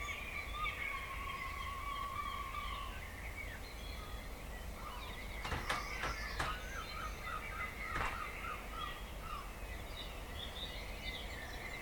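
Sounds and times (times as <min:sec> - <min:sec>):
dawn chorus of birds: 0:00.0 - 0:11.8
sharp clicks or snaps: 0:05.4 - 0:06.7.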